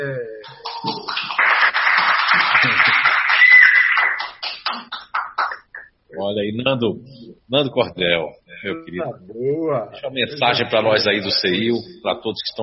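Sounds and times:
audience applause: 0.6 - 5.8
speech: 6.4 - 12.6.

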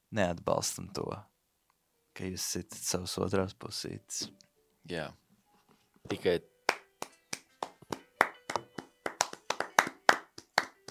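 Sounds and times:
speech: 0.1 - 1.3, 2.2 - 5.2, 6.0 - 6.5
hands clapping: 6.1 - 10.8.

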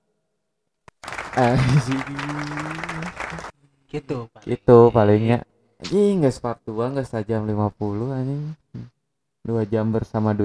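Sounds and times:
applause: 0.9 - 3.6
laughter: 1.3 - 3.5
speech: 1.4 - 2.7, 3.9 - 10.4.

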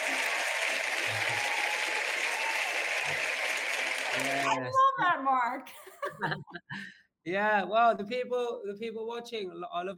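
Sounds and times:
round of applause: 0.0 - 4.7
speech: 4.2 - 9.9
laughter: 5.7 - 6.8.

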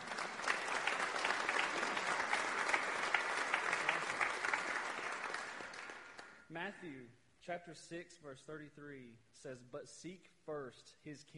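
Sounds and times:
congregation clapping in praise at a church anniversary service: 0.0 - 6.5
speech: 6.6 - 11.3.

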